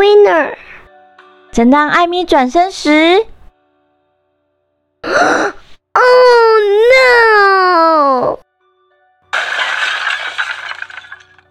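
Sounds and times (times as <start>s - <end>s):
speech: 0.2s - 0.7s, 1.6s - 3.3s, 5.0s - 8.4s
crayon holder falling to the floor and breaking apart: 9.4s - 11.4s.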